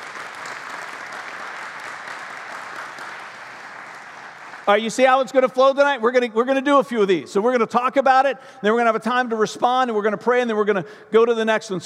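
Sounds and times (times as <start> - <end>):
audience applauding: 0.0 - 5.4
speech: 4.7 - 11.8.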